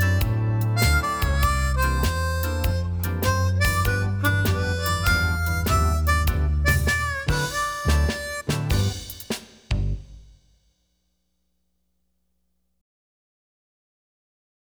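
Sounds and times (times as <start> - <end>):
twelve-bar blues solo on harmonica: 0.0 - 9.2.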